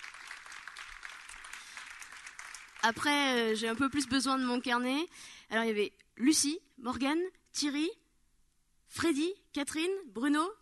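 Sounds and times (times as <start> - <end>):
audience applause: 0.0 - 3.0
speech: 2.8 - 8.0, 8.9 - 10.6.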